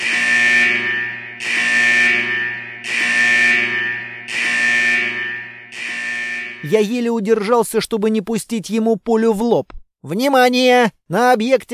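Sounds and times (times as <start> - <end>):
security alarm blaring at a facility: 0.0 - 7.0
speech: 6.7 - 11.7.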